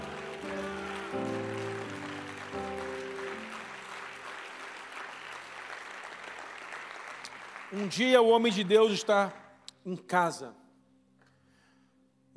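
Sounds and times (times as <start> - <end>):
audience clapping hands: 0.0 - 9.5
speech: 7.7 - 10.6.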